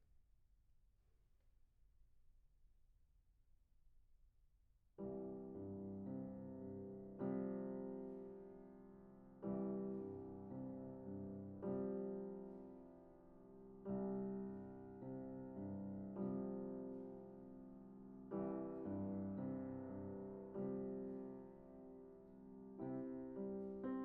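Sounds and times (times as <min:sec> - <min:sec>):
piano: 0:05.0 - 0:24.0.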